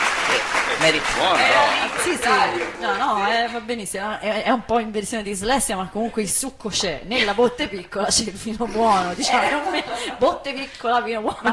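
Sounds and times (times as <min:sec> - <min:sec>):
crowd applause: 0:00.0 - 0:03.2
speech: 0:00.8 - 0:11.5
laughter: 0:08.6 - 0:11.5.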